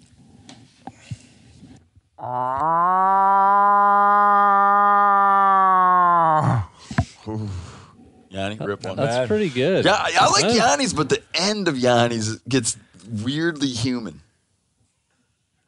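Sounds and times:
faint movement and breaths: 0:00.0 - 0:02.2, 0:06.7 - 0:08.6
speech: 0:02.2 - 0:03.3, 0:08.3 - 0:14.2
person imitating a cow moose call: 0:02.2 - 0:06.8.

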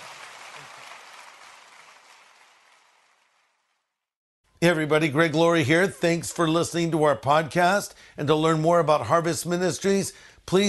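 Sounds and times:
round of applause: 0:00.0 - 0:04.0
speech: 0:04.6 - 0:10.6.

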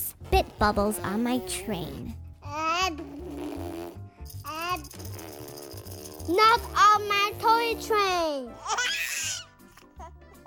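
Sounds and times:
baby blowing a wet buzzy raspberry: 0:00.0 - 0:01.5, 0:02.9 - 0:08.2
speech: 0:00.4 - 0:02.2, 0:06.3 - 0:08.8.

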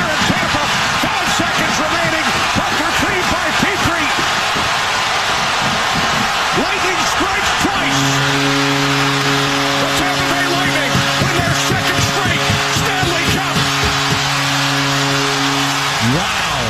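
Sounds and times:
real arena crowd cheering at hockey game: 0:00.0 - 0:16.6.

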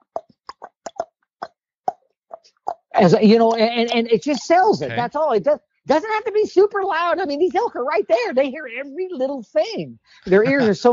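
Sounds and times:
tongue clicks against the roof of the mouth: 0:00.0 - 0:02.9
speech: 0:03.0 - 0:10.9.

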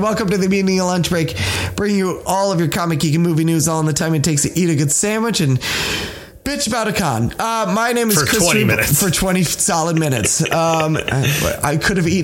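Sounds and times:
speech: 0:00.1 - 0:12.2
person imitating a roar into microphone: 0:08.1 - 0:09.0
laughter: 0:08.1 - 0:12.2.

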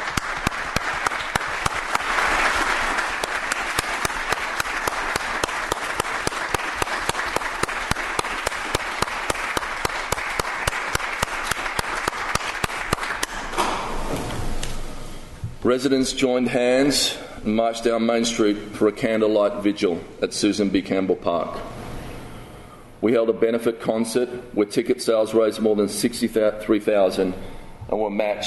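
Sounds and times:
crowd applause: 0:00.0 - 0:13.6
speech: 0:15.7 - 0:21.8, 0:23.0 - 0:28.4.

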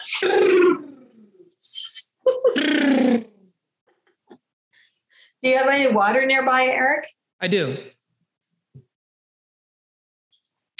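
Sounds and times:
speech: 0:00.2 - 0:00.6, 0:05.4 - 0:08.0
person blowing air out: 0:02.6 - 0:03.4.

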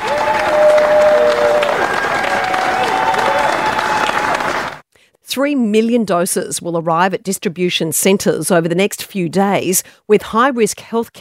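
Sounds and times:
factory workers cheering and applauding: 0:00.0 - 0:04.8
speech: 0:05.4 - 0:11.1.

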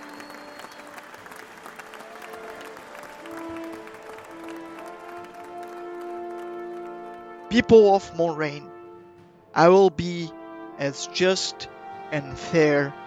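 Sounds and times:
crowd cheering: 0:00.0 - 0:07.3
speech: 0:07.5 - 0:08.7, 0:09.6 - 0:13.0.

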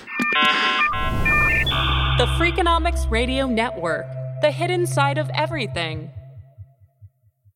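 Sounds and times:
car alarm going off outside: 0:00.3 - 0:02.9
speech: 0:02.2 - 0:06.2.

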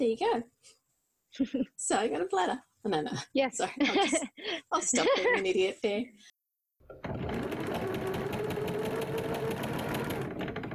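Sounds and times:
speech: 0:00.0 - 0:07.9
laughter: 0:03.8 - 0:05.5
sewing machine stitching a seam on a blazer collar band: 0:06.9 - 0:10.7.

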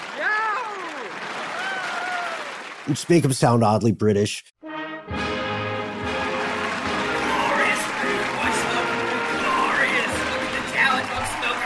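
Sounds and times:
people cheering: 0:00.0 - 0:03.4, 0:06.1 - 0:11.6
speech: 0:02.9 - 0:05.2.

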